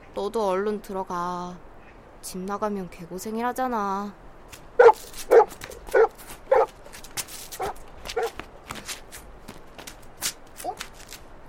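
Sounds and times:
speech: 0.2 - 5.1
dog barking: 4.8 - 6.7, 7.6 - 8.4.

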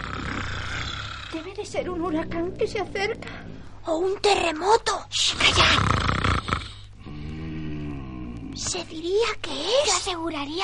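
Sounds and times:
loud snoring of a sleeping ogre: 0.0 - 3.5, 5.4 - 8.6
speech: 1.4 - 5.9, 8.7 - 10.6.

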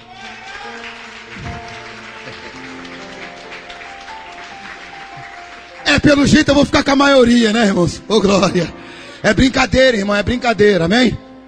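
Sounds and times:
audience applauding: 0.0 - 7.2
speech: 6.0 - 11.2.

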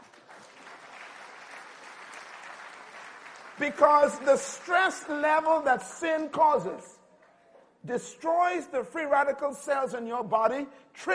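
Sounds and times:
audience clapping: 0.0 - 6.4
speech: 3.6 - 7.0, 7.8 - 11.1.

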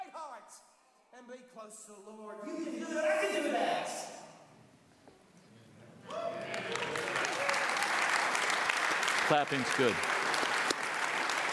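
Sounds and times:
speech: 1.2 - 4.3, 9.3 - 10.1
audience applause: 6.1 - 11.5.

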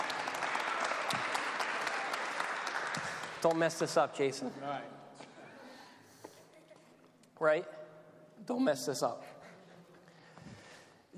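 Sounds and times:
audience applause: 0.0 - 3.9
speech: 3.4 - 5.0, 7.4 - 7.8, 8.4 - 9.3.

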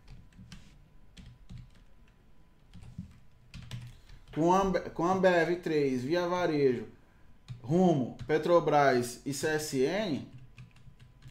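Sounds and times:
computer keyboard typing while writing out a stock portfolio: 0.0 - 4.4, 7.4 - 8.4, 10.3 - 11.3
speech: 4.4 - 7.0, 7.7 - 10.4.

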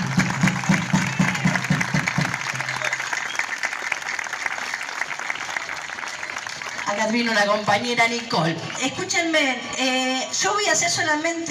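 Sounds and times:
crowd applause: 0.0 - 9.0
speech: 7.1 - 11.4.

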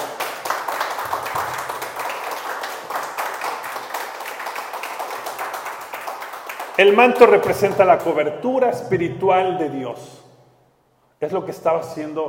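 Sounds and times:
audience applause: 0.0 - 8.0
speech: 6.8 - 10.2, 11.2 - 12.2.

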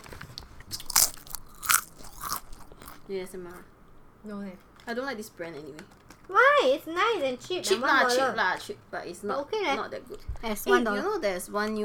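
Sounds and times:
crunching on potato chips: 0.0 - 3.1
speech: 3.1 - 11.8.

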